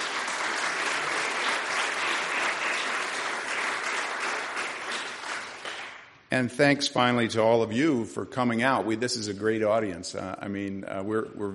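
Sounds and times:
academic conference audience applause: 0.0 - 6.0
speech: 6.4 - 11.5.

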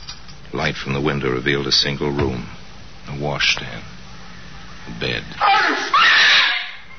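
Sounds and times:
speech: 0.6 - 3.9, 4.9 - 6.1
woman screaming in horror: 5.4 - 6.8.

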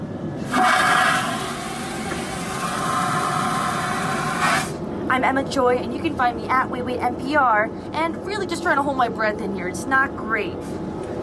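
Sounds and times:
airplane toilet flushing: 0.4 - 4.8
speech: 5.2 - 10.9.

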